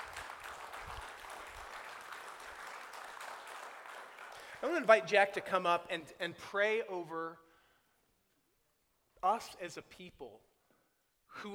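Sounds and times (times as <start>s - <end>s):
audience applauding: 0.0s - 5.0s
speech: 4.6s - 7.5s, 9.2s - 10.5s, 11.3s - 11.5s.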